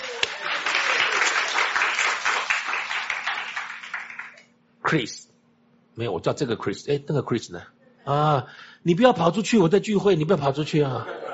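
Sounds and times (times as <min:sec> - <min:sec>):
audience clapping: 0:00.0 - 0:04.5
speech: 0:04.9 - 0:05.3, 0:06.0 - 0:11.2
laughter: 0:10.9 - 0:11.3.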